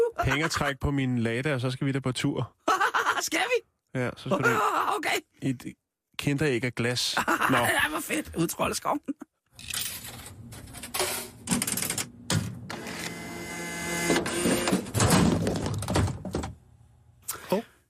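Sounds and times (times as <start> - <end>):
laughter: 0.0 - 0.7, 2.6 - 3.4, 4.3 - 5.0, 7.2 - 7.9
speech: 0.2 - 2.6, 3.2 - 9.8, 17.5 - 17.7
gum vending machine grinding and whirring: 9.7 - 15.9.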